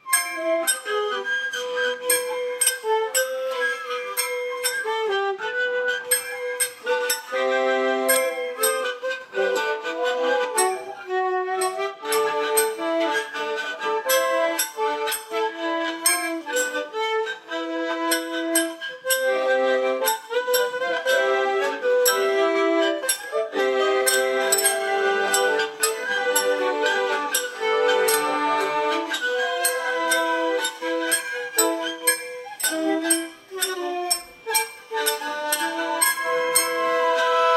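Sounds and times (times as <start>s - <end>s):
cheerful folk fantasy music: 0.0s - 37.5s.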